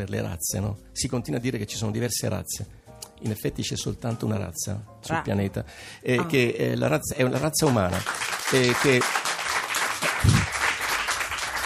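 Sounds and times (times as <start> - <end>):
speech: 0.0 - 9.2
audience applause: 7.3 - 11.6.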